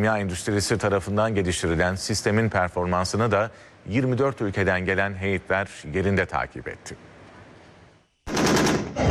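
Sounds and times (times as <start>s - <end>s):
speech: 0.0s - 7.1s
air defense system automatic gunfire during test: 8.3s - 9.0s.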